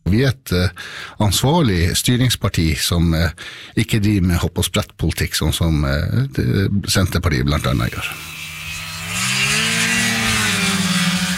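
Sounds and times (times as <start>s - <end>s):
speech: 0.1s - 8.4s
snowmobile engine revving: 7.9s - 11.3s.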